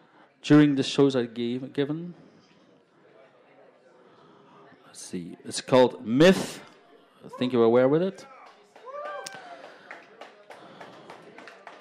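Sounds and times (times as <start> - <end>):
speech: 0.4 - 2.2, 5.1 - 8.3
mild scattered audience applause: 8.4 - 11.7
high vocal whoop: 8.8 - 9.6.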